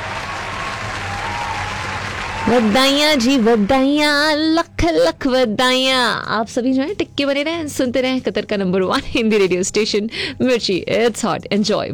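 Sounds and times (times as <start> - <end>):
crowd applause for a contest's season winners and runners-up: 0.0 - 4.0
speech: 2.5 - 11.9.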